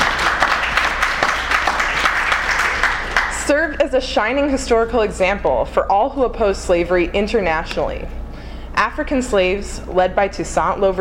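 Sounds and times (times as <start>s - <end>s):
audience clapping: 0.0s - 3.4s
speech: 3.5s - 8.2s, 8.8s - 10.9s.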